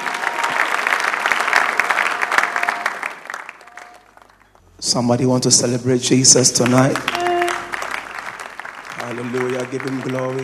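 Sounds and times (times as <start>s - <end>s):
audience applause: 0.0s - 4.6s, 6.6s - 10.4s
speech: 4.9s - 7.2s, 9.1s - 10.4s.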